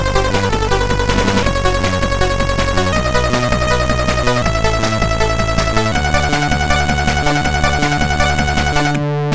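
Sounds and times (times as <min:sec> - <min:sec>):
song on a MOS6581R3 SID chip: 0:00.0 - 0:09.3.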